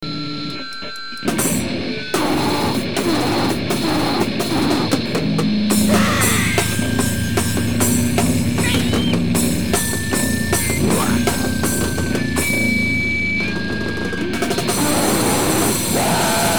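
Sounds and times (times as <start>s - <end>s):
noisecore music: 0.0s - 16.5s.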